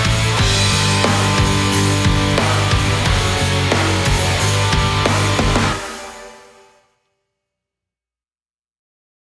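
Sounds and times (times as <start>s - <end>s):
karaoke singing: 0.0s - 6.6s.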